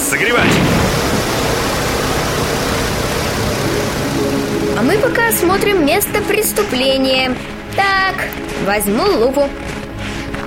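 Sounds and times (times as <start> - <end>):
heat cannon fan heater blowing hot air: 0.0 - 5.8
speech: 0.1 - 0.9, 4.8 - 9.7.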